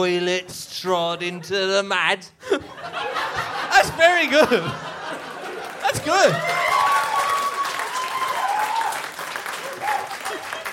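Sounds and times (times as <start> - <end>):
speech: 0.0 - 4.9, 5.9 - 6.8
laughter: 2.4 - 6.5, 9.6 - 10.7
audience applause: 5.1 - 10.7.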